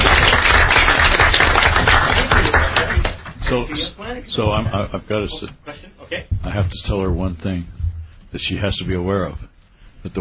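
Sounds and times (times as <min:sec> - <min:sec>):
round of applause: 0:00.0 - 0:04.0
speech: 0:03.8 - 0:10.1.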